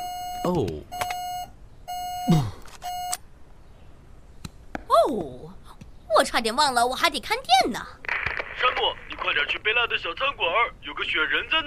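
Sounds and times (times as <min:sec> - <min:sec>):
smoke alarm low-battery beep: 0:00.0 - 0:03.2
speech: 0:00.4 - 0:01.0, 0:06.2 - 0:08.0, 0:08.6 - 0:11.6.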